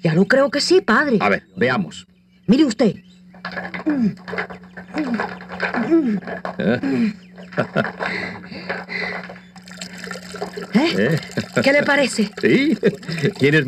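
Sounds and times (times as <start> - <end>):
speech: 0.0 - 9.4, 10.3 - 13.6
laughter: 5.8 - 9.1, 10.7 - 13.6
well mechanism hauling up water: 8.9 - 13.6.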